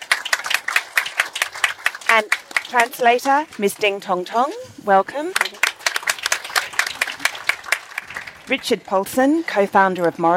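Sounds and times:
audience applause: 0:00.0 - 0:03.9, 0:05.2 - 0:08.8
speech: 0:02.2 - 0:05.7, 0:08.5 - 0:10.3.

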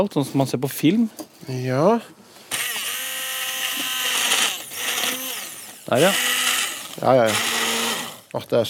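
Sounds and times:
speech: 0:00.0 - 0:02.2, 0:05.9 - 0:06.3, 0:07.0 - 0:07.5, 0:08.3 - 0:08.6
electric blender running: 0:02.5 - 0:08.3.

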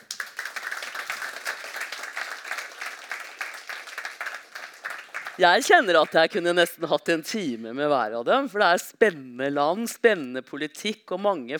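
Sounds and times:
audience applause: 0:00.0 - 0:06.3
speech: 0:05.4 - 0:11.5.

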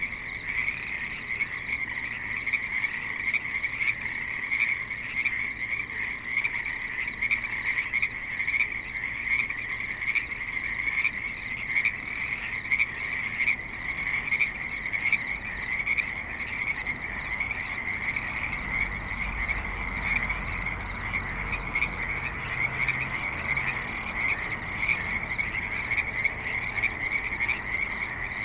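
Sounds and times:
frog chorus: 0:00.0 - 0:28.4
low traffic rumble: 0:00.0 - 0:28.4.

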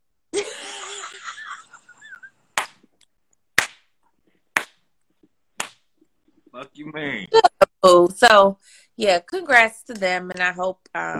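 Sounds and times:
slow clap: 0:02.6 - 0:04.0, 0:04.6 - 0:04.8, 0:05.6 - 0:05.9
speech: 0:06.6 - 0:07.6, 0:08.2 - 0:11.1.

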